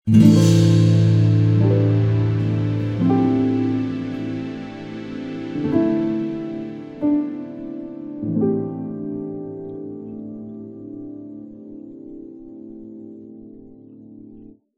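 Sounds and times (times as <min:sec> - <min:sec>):
chord: 0:00.1 - 0:10.6.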